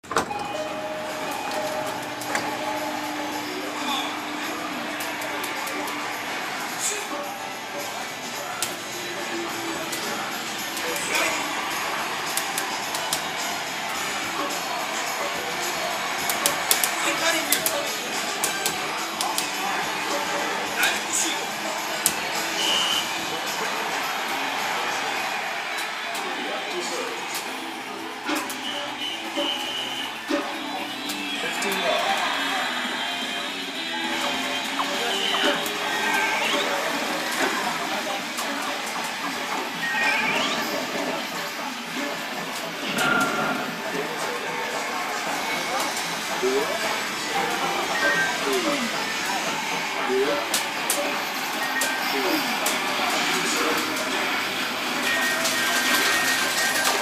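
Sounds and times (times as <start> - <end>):
video arcade: 0.0 - 57.0.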